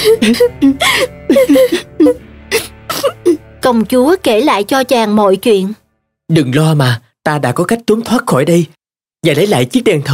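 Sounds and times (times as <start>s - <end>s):
speech: 0.0s - 2.6s, 3.6s - 10.1s
Aladdin and the princess sobbing as they embrace: 0.0s - 3.2s.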